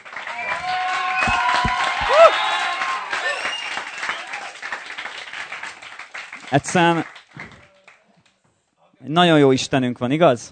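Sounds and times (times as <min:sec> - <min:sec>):
audience applause: 0:00.0 - 0:08.0
cheers and whoops: 0:00.2 - 0:04.6
person shouting: 0:01.1 - 0:02.4
speech: 0:06.5 - 0:07.1, 0:09.1 - 0:10.4.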